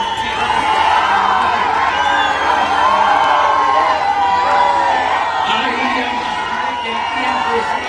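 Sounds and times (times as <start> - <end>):
concert crowd booing: 0.0 - 7.8.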